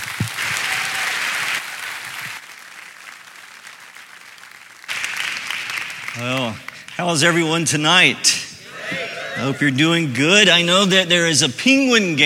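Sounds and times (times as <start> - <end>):
audience applause welcoming a speaker: 0.0 - 7.4
speech: 6.2 - 8.4, 9.4 - 12.2.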